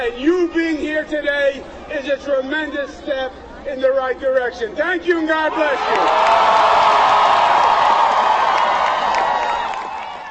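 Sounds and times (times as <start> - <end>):
speech: 0.0 - 7.0
political rally crowd cheering: 5.4 - 10.2
scattered whoops from a rally crowd: 5.9 - 10.2
political rally crowd applause: 6.0 - 10.2.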